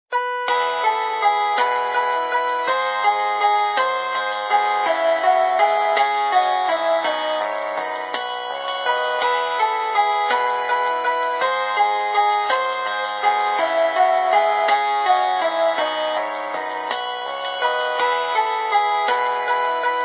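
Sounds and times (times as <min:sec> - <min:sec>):
polyphonic ringtone: 0:00.1 - 0:20.0.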